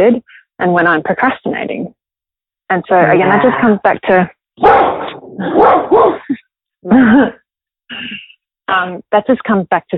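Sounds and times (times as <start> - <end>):
speech: 0.0 - 2.0, 2.7 - 9.9
guard dog barking: 4.6 - 6.3.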